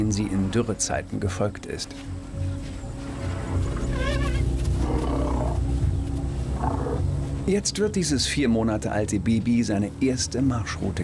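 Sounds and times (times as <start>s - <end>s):
speech: 0.0s - 2.2s, 7.5s - 11.0s
elephant rumbling: 2.5s - 7.6s
elephant trumpet-like call: 3.1s - 5.7s, 6.5s - 7.1s.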